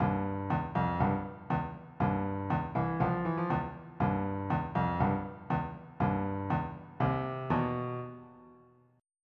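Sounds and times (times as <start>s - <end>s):
funk music: 0.0s - 8.1s.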